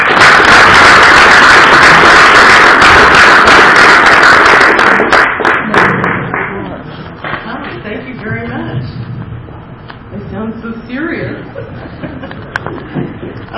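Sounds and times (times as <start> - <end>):
crowd applause: 0.0 - 6.5
laughter: 11.4 - 13.3.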